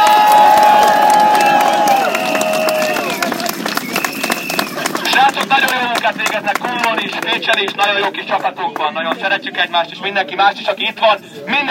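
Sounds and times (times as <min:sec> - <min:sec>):
crowd applauding and cheering: 0:00.0 - 0:09.2
speech: 0:07.4 - 0:11.6.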